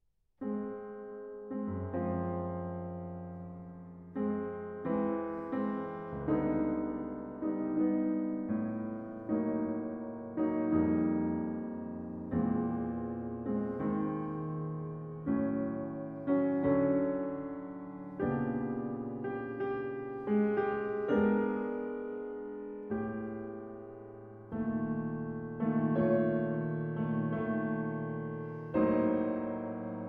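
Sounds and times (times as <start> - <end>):
piano suite funeral march: 0.4 - 30.0.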